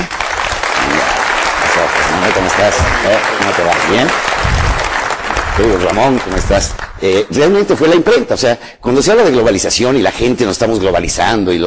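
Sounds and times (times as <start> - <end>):
audience clapping: 0.0 - 8.1
speech: 2.3 - 4.6, 5.6 - 11.6.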